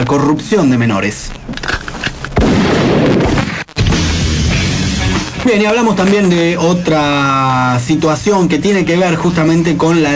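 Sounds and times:
speech: 0.1 - 1.5, 5.4 - 10.1
gunshot sound effect: 2.4 - 3.7
booming rumble: 2.4 - 5.2
sustained blast of noise: 2.4 - 5.8.

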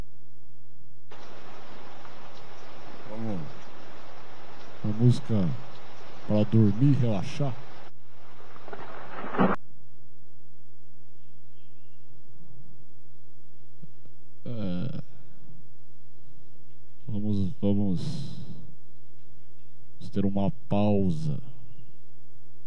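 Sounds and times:
quiet hum: 0.0 - 22.6
low thunder rumble of a thunderstorm in Brazil: 1.1 - 9.6
rushing rain of a thunderstorm in Brazil: 1.1 - 9.6
speech: 5.0 - 5.7, 6.3 - 7.7.

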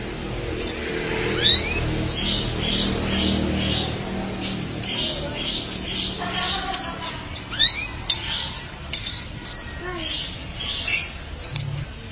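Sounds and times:
canary singing: 0.1 - 11.8.

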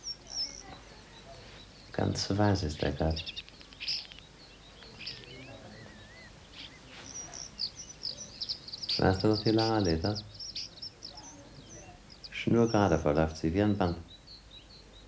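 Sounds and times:
starlings chirping: 0.0 - 15.0
speech: 2.0 - 3.4, 9.0 - 10.3, 12.5 - 14.1.

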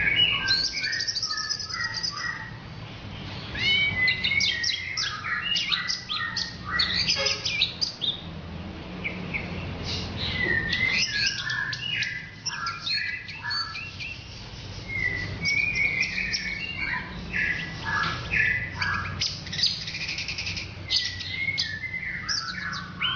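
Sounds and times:
Orange-headed thrush whistling song: 0.0 - 2.6, 3.6 - 8.2, 9.0 - 23.1.

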